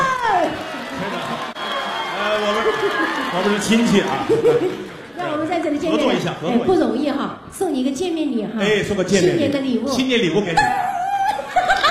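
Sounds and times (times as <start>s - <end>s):
audience applause: 0.0s - 6.3s
laughter: 2.3s - 5.1s, 10.6s - 11.9s
speech: 3.3s - 4.9s, 5.6s - 10.9s.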